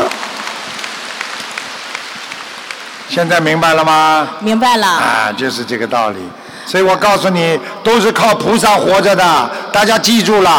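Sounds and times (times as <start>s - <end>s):
audience applause: 0.0s - 3.9s
speech: 3.2s - 10.5s.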